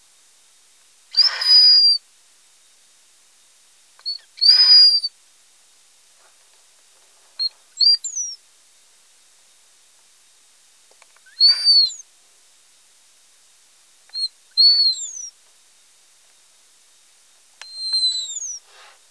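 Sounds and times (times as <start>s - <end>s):
juvenile mouse: 1.1s - 2.0s, 4.0s - 5.1s, 7.4s - 8.4s, 11.2s - 12.0s, 14.1s - 15.4s, 17.6s - 18.6s.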